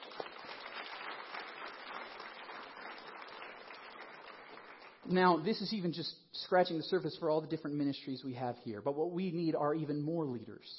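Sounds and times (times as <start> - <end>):
crowd applauding: 0.0 - 5.1
speech: 5.1 - 10.7.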